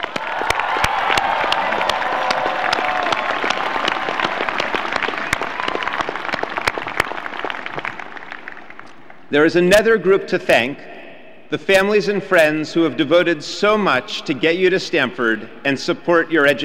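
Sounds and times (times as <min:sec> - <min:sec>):
Stanford graduation audience applause: 0:00.0 - 0:09.3
crowd cheering: 0:00.0 - 0:09.3
speech: 0:09.3 - 0:16.6.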